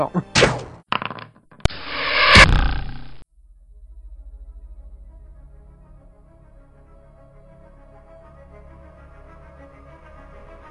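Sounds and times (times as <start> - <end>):
arrow flying in: 1.7 - 3.2.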